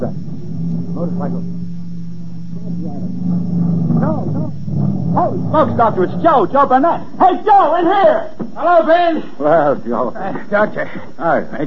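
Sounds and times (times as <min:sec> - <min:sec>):
speech: 0:00.0 - 0:00.2, 0:01.0 - 0:01.7, 0:02.6 - 0:11.6
motorcycle engine: 0:00.0 - 0:06.6.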